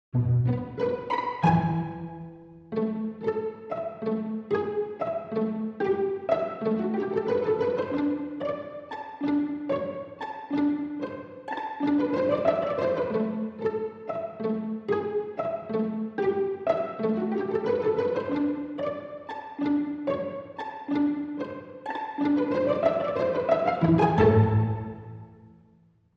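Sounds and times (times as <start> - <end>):
strings: 0.1 - 25.7.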